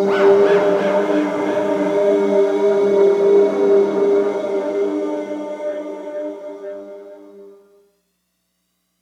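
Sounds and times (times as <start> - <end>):
person singing wrong: 0.1 - 6.1.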